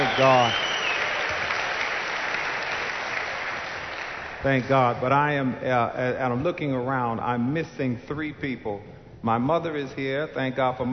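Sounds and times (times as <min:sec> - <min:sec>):
audience applause welcoming guests: 0:00.0 - 0:04.4
speech: 0:00.2 - 0:00.6, 0:04.4 - 0:10.9.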